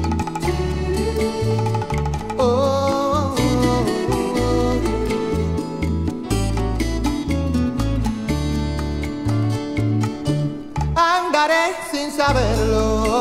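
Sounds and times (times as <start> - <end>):
Puerto Rican, Colombian and Latin American folkloric music: 0.0 - 13.1.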